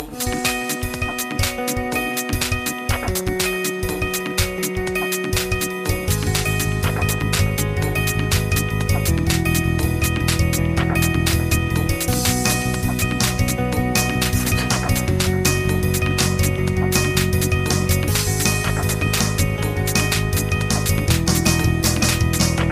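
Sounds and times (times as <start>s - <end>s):
Infinix Note 10 ringtone: 0.0s - 22.7s.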